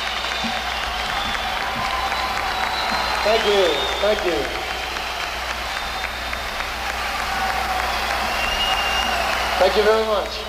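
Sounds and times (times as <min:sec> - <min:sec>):
crowd applause: 0:00.0 - 0:10.4
speech: 0:03.2 - 0:04.6, 0:09.6 - 0:10.4.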